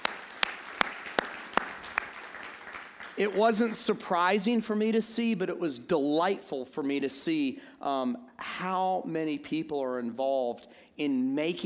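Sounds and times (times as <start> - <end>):
audience applause: 0.0 - 3.6
speech: 3.2 - 11.6.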